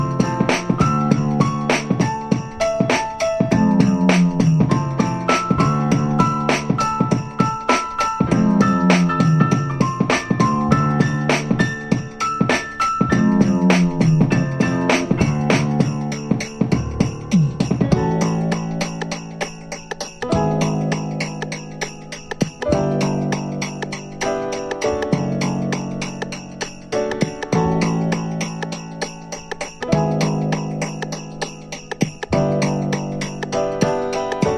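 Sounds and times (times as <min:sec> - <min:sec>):
piano rag music: 0:00.0 - 0:34.5.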